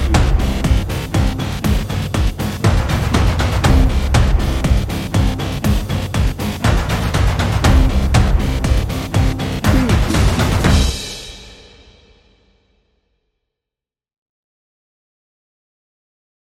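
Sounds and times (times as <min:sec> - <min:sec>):
warrior march drum and bass music: 0:00.0 - 0:11.7.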